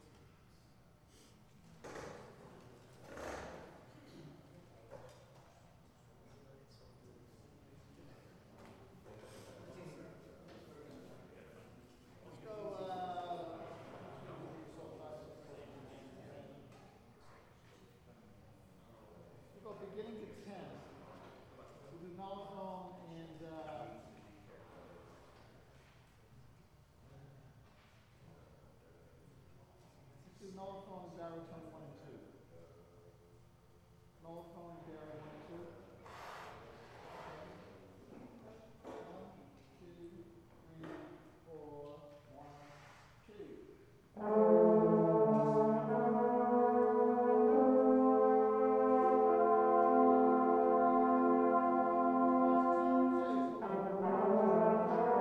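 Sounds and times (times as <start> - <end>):
brass instruments: 44.1 - 55.1.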